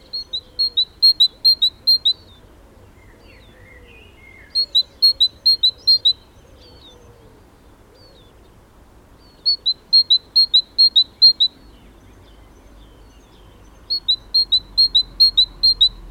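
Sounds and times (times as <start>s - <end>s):
Parus major great tit singing two-note phrases: 0.0s - 2.3s, 4.4s - 6.9s, 9.2s - 16.0s.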